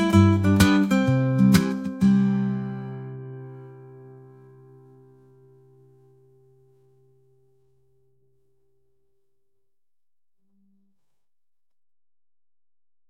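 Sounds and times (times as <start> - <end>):
gentle acoustic guitar: 0.0 - 9.1.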